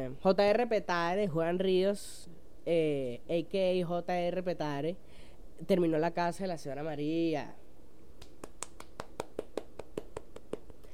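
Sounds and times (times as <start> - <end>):
speech: 0.0 - 7.6
faint hum: 0.0 - 10.9
single person clapping hands alone: 8.2 - 10.9.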